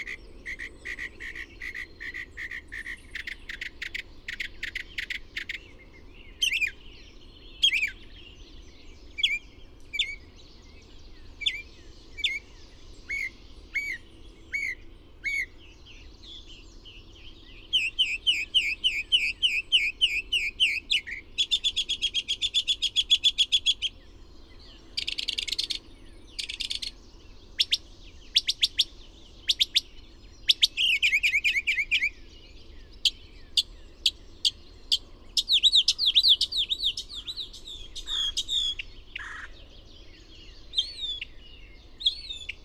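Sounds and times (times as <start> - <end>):
bird song: 0.0 - 42.6.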